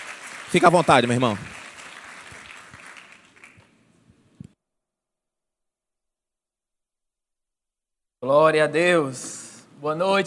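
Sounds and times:
audience applause: 0:00.0 - 0:03.8
speech: 0:00.5 - 0:01.6, 0:08.3 - 0:10.2.

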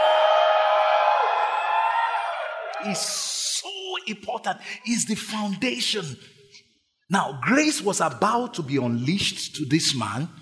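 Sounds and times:
audience screaming and cheering: 0:00.0 - 0:03.3
speech: 0:02.8 - 0:10.4.

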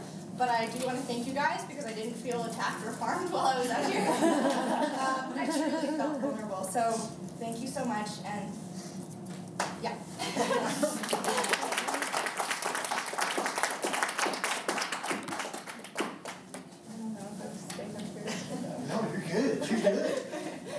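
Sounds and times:
speech: 0:00.4 - 0:08.9, 0:09.8 - 0:11.5
laughter: 0:03.7 - 0:06.3, 0:10.2 - 0:12.0, 0:18.2 - 0:20.7
applause: 0:10.9 - 0:16.7.

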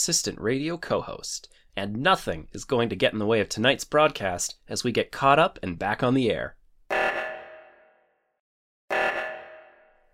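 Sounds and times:
speech: 0:00.0 - 0:06.6
phone ringtone: 0:06.9 - 0:07.8.

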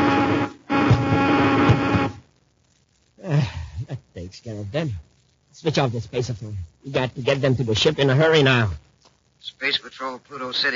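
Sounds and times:
ray gun buzzing: 0:00.0 - 0:02.2
speech: 0:04.4 - 0:10.7.

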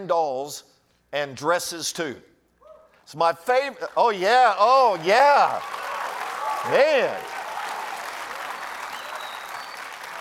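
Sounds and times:
speech: 0:00.0 - 0:02.3, 0:03.1 - 0:05.8, 0:06.6 - 0:07.3
audience applause: 0:03.8 - 0:10.2.

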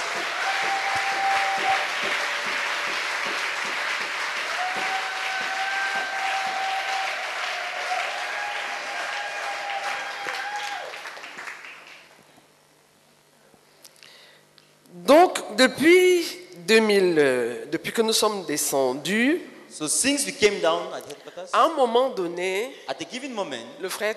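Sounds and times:
church congregation clapping during a thanksgiving service: 0:00.0 - 0:12.2
speech: 0:15.6 - 0:16.0, 0:16.7 - 0:24.1.

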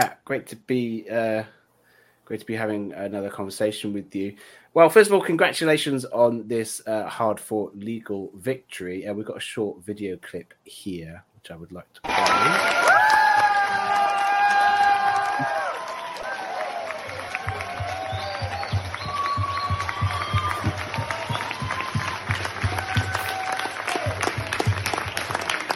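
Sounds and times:
speech: 0:00.0 - 0:01.6, 0:02.3 - 0:12.9
crowd cheering and applauding a speaker at a speaking event in Bristol: 0:12.0 - 0:25.7
shouts and whistles: 0:12.1 - 0:25.4.

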